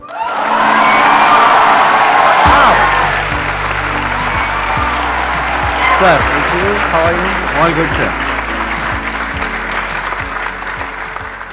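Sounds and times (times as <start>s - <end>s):
cheering and whoops: 0.0s - 6.9s
crowd applause: 0.0s - 11.5s
speech: 6.9s - 8.3s.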